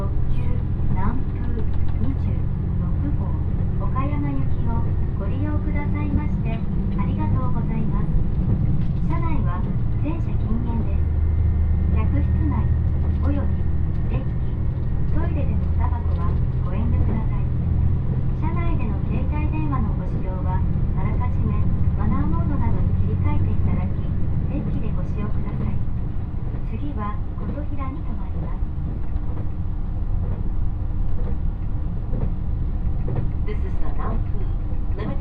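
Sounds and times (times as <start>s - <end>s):
Nanpu limited express train rumbling on the Dosan Line: 0.0s - 35.1s.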